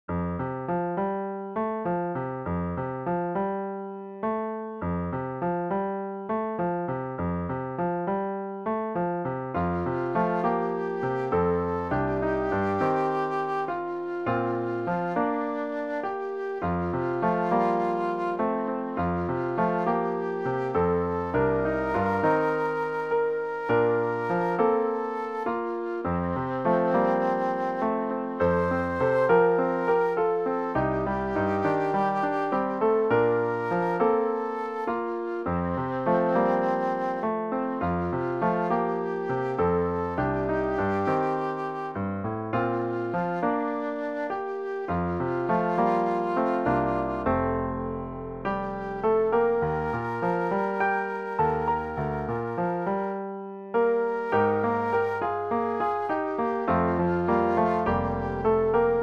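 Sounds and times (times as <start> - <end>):
piano: 0.0 - 59.0.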